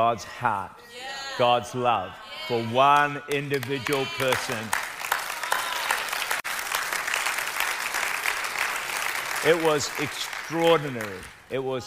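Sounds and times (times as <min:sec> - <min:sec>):
speech: 0:00.0 - 0:04.8, 0:09.4 - 0:11.8
crowd clapping: 0:02.8 - 0:11.6.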